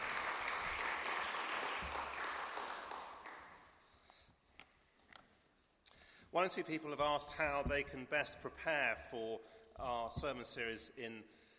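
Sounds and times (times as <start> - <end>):
applause: 0.0 - 3.8
speech: 6.3 - 11.4.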